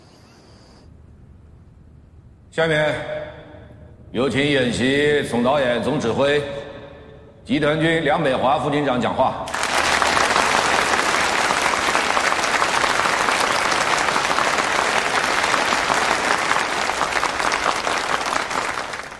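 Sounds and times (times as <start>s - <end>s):
speech: 2.5s - 3.2s, 4.1s - 6.7s, 7.5s - 9.6s
warm applause from audience: 9.5s - 19.1s.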